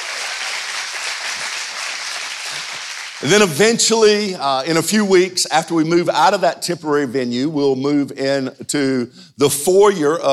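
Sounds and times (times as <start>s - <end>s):
audience clapping: 0.0s - 3.6s
speech: 3.2s - 10.3s.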